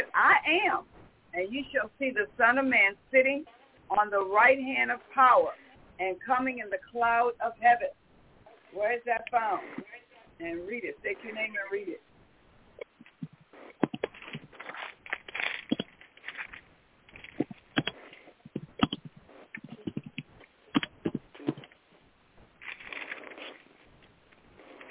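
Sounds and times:
speech: 0:00.2 - 0:08.0, 0:08.7 - 0:12.1
pages of a book being turned: 0:13.0 - 0:20.2, 0:22.6 - 0:23.8, 0:24.6 - 0:24.8.

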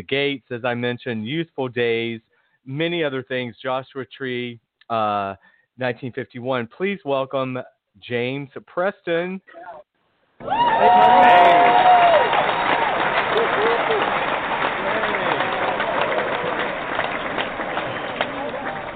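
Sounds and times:
speech: 0:00.0 - 0:12.8
whistle-like cheer: 0:10.4 - 0:15.5
audience applause: 0:10.4 - 0:18.9
crowd voices: 0:10.4 - 0:18.9.

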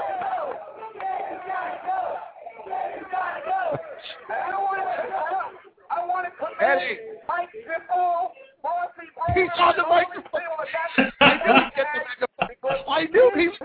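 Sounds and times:
laughter: 0:00.0 - 0:05.7, 0:09.4 - 0:13.4
large crowd chanting in unison: 0:00.0 - 0:07.9
speech: 0:09.3 - 0:11.2.

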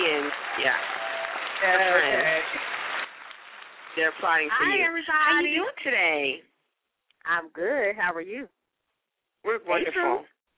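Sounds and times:
high-pitched cheering voices: 0:00.0 - 0:03.0
audience applause: 0:00.0 - 0:05.3
speech: 0:01.6 - 0:02.0, 0:04.0 - 0:06.5, 0:07.2 - 0:08.6, 0:09.4 - 0:10.3.

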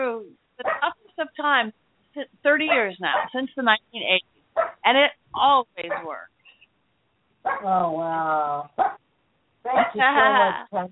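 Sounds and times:
dog barking: 0:00.6 - 0:01.0, 0:02.6 - 0:03.4, 0:04.6 - 0:04.8, 0:05.9 - 0:06.1, 0:07.4 - 0:07.7, 0:08.8 - 0:09.0, 0:09.7 - 0:10.0
speech: 0:01.4 - 0:06.3, 0:07.5 - 0:08.9, 0:09.7 - 0:10.9.

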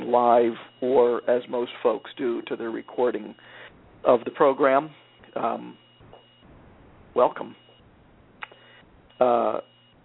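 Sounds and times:
short buzzy band-limited phone line tone: 0:00.0 - 0:06.5, 0:08.5 - 0:10.0
speech: 0:00.1 - 0:05.8, 0:07.2 - 0:07.6, 0:09.2 - 0:09.7.

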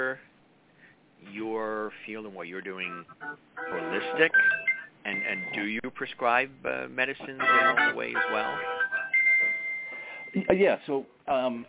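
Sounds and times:
speech: 0:02.1 - 0:08.8, 0:10.3 - 0:11.6
phone ringing: 0:03.1 - 0:05.8, 0:07.4 - 0:10.6.

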